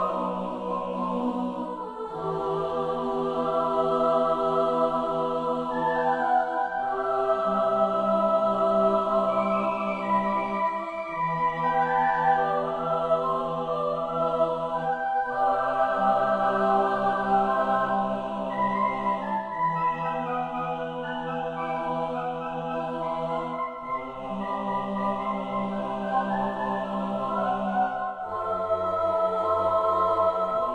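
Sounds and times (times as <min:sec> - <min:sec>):
choir singing: 0:00.0 - 0:30.7.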